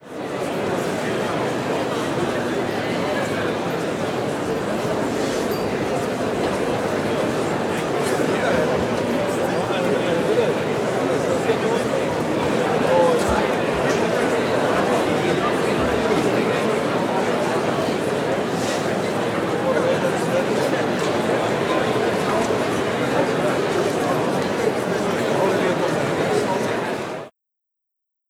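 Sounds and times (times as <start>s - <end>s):
murmur of voices in the Sagrada Familia: 0.0s - 27.3s.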